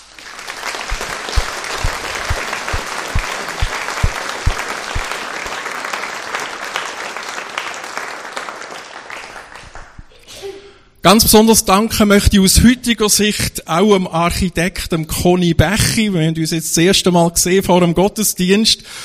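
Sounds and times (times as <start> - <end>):
audience applause: 0.0 - 10.0
speech: 11.0 - 19.0.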